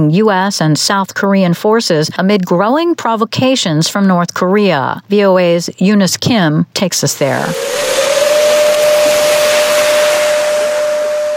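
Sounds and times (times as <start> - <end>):
speech: 0.0 - 8.1
air raid siren blaring: 7.1 - 11.3
broad hissing noise: 7.1 - 11.3.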